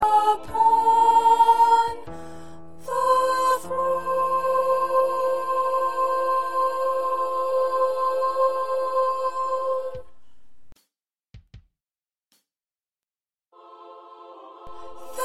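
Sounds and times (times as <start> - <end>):
second soprano singing: 0.0 - 10.1, 13.6 - 15.2.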